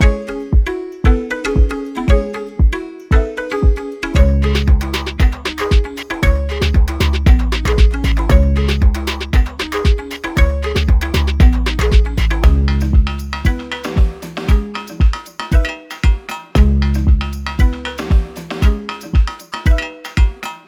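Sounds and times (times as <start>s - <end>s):
loud classic loop: 0.0s - 20.6s.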